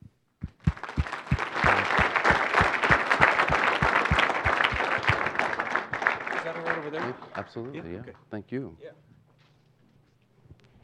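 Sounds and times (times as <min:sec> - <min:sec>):
audience applause welcoming a guest speaker to the stage: 0:00.6 - 0:08.0
speech: 0:07.4 - 0:09.0.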